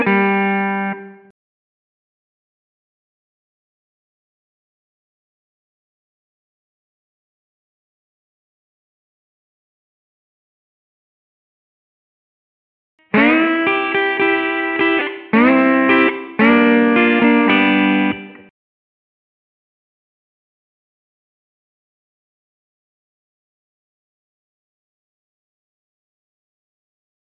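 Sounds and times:
slide guitar in G: 0:00.0 - 0:01.1, 0:13.1 - 0:18.5.

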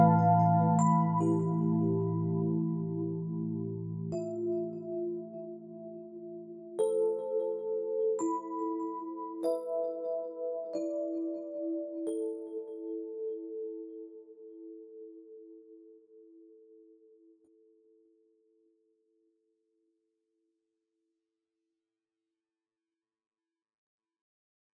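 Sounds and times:
slow stereo mix in E minor at 90 BPM: 0:00.0 - 0:13.6.

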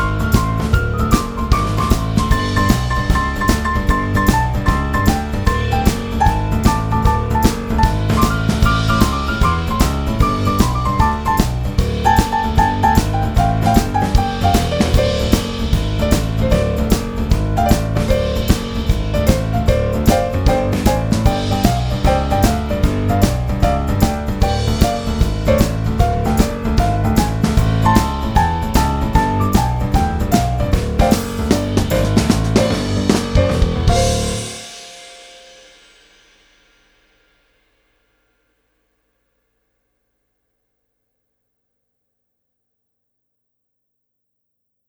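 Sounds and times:
boogie music: 0:00.0 - 0:35.3.

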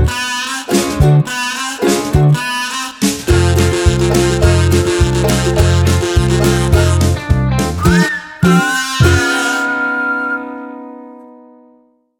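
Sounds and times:
whistle: 0:00.0 - 0:07.0, 0:07.8 - 0:10.8
kazoo: 0:00.0 - 0:07.2, 0:07.8 - 0:10.4
ukulele: 0:00.0 - 0:11.2.

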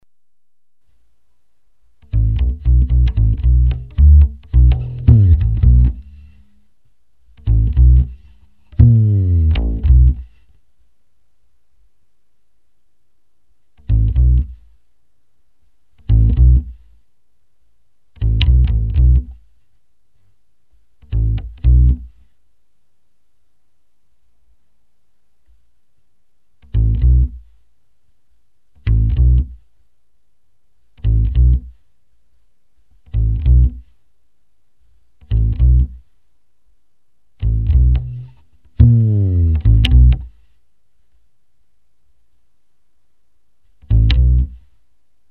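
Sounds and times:
bass: 0:02.0 - 0:10.6, 0:13.6 - 0:14.9, 0:15.9 - 0:17.0, 0:18.1 - 0:22.4, 0:26.6 - 0:27.6, 0:28.7 - 0:29.8, 0:30.8 - 0:31.9, 0:32.8 - 0:34.0, 0:35.1 - 0:36.2, 0:37.3 - 0:40.6, 0:43.6 - 0:44.8.

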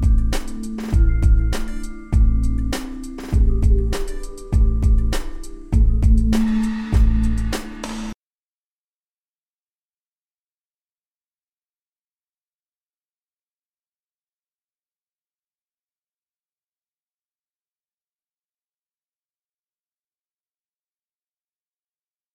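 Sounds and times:
groove loop: 0:00.0 - 0:08.2.

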